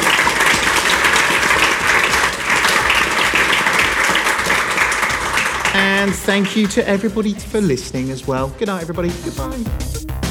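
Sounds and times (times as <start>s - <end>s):
audience applause: 0.0s - 7.5s
speech: 6.1s - 10.2s.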